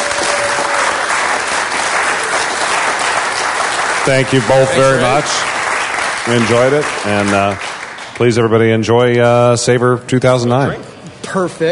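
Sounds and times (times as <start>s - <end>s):
audience applause: 0.0s - 8.5s
speech: 4.0s - 5.6s, 6.3s - 11.7s.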